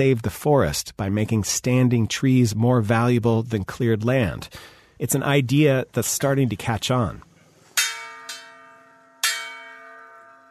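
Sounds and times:
speech: 0.0 - 7.3
brass bell rung by a Munduruku chief in Mato Grosso to call a meeting: 7.8 - 10.5.

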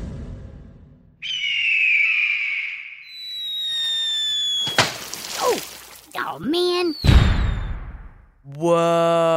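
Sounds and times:
cartoonish eagle swoop effect: 1.2 - 4.9, 6.6 - 8.1
water balloon splash effect: 4.6 - 6.3
speech: 6.3 - 7.1, 8.5 - 9.3.

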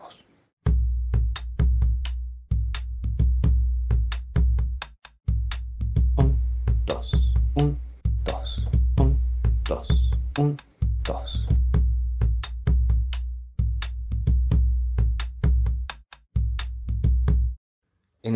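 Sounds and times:
bombo legüero drum playing chacarera rhythm: 0.7 - 17.6.

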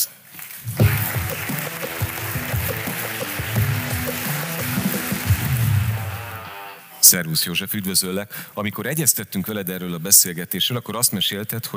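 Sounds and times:
audience applause: 0.8 - 6.7
low musical backing: 0.8 - 7.1
speech: 7.1 - 11.7.

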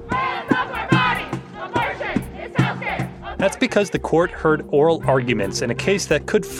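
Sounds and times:
protest crowd chanting outside the Supreme Court: 0.0 - 4.0
speech: 3.4 - 6.5.

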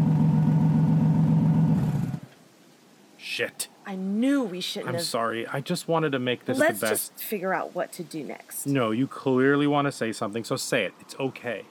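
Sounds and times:
car engine rumbling while turning: 0.0 - 2.3
speech: 3.4 - 11.6.

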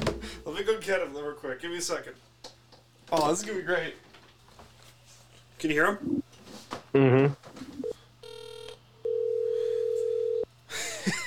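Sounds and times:
speech: 0.6 - 2.3, 3.1 - 4.1, 5.6 - 6.2, 6.9 - 7.8
electronic phone tones while placing a call: 7.7 - 10.5.

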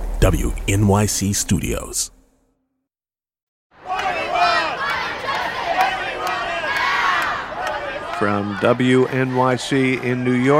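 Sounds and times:
speech: 0.2 - 2.2, 8.2 - 10.5
climate strike crowd of students shouting and cheering in Foley Square: 3.8 - 10.5.

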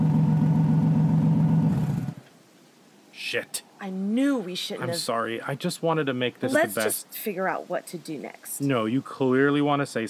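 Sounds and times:
car engine hum while turning around: 0.0 - 2.3
speech: 3.3 - 10.0.

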